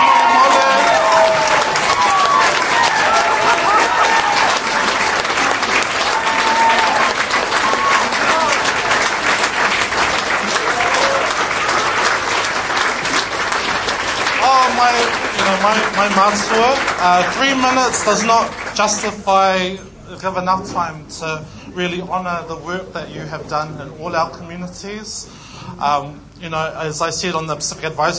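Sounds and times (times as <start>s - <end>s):
cheers and whoops: 0.0s - 8.9s, 10.4s - 11.9s
crowd applauding: 0.0s - 19.4s
speech: 16.0s - 28.1s.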